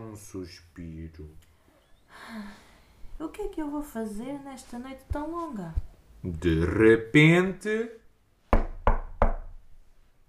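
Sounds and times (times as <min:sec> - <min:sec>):
speech: 0:00.1 - 0:01.5, 0:02.1 - 0:08.0
knocking on a door: 0:08.5 - 0:09.6.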